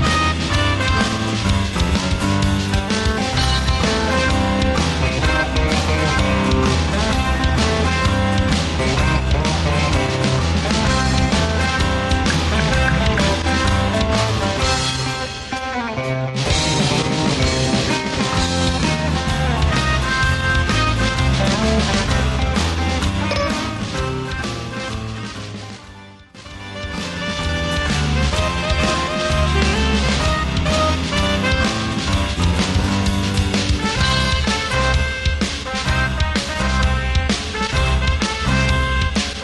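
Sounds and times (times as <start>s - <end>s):
song: 0.0s - 39.4s
sound effects: 3.2s - 15.8s, 16.4s - 35.0s.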